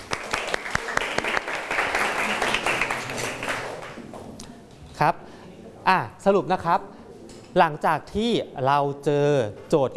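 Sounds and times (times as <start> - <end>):
classroom applause: 0.0 - 4.0
speech: 5.0 - 5.2, 5.9 - 7.0, 7.6 - 9.9.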